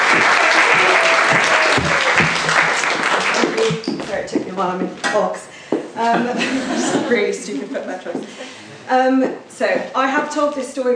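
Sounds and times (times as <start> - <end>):
audience applause at a live storytelling event: 0.0 - 3.9
speech: 3.6 - 10.9
laughter: 6.0 - 8.7.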